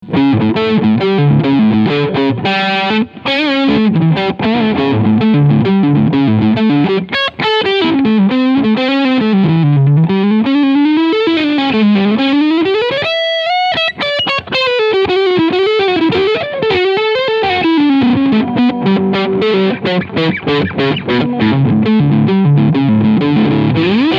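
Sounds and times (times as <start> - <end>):
Chapman ML1 RS crunch sound on both humbuckers: 0.0 - 24.1.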